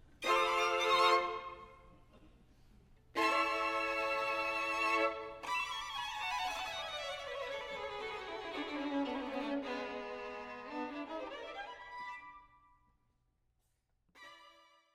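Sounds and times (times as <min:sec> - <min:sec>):
four violins playing: 0:00.2 - 0:01.7, 0:03.2 - 0:12.5.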